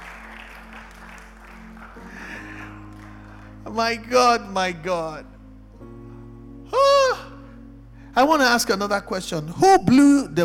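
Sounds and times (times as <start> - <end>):
audience clapping: 0.0 - 3.8
low organ-like chords: 0.0 - 10.4
speech: 3.7 - 5.3, 8.2 - 10.4.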